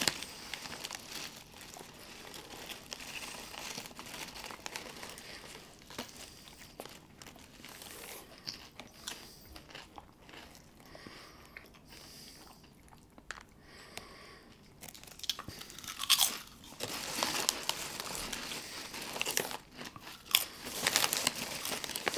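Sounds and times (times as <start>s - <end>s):
chips bag crinkling and crumpling: 0.0s - 10.6s, 14.8s - 22.1s
chips crunching and chewing: 0.0s - 22.1s.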